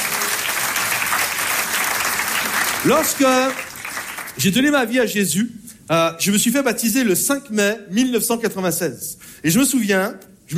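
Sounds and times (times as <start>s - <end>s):
audience applauding loudly: 0.0s - 4.7s
speech: 2.8s - 3.7s, 4.4s - 10.5s.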